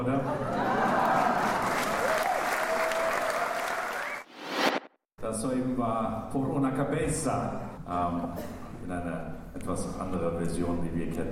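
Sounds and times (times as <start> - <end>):
speech: 0.0 - 0.6, 5.3 - 11.3
concert audience applause: 0.7 - 4.3.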